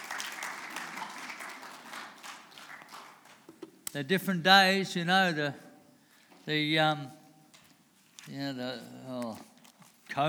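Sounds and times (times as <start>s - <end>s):
audience round of applause: 0.0s - 3.4s
speech: 3.9s - 5.6s, 6.4s - 7.2s, 8.3s - 9.5s.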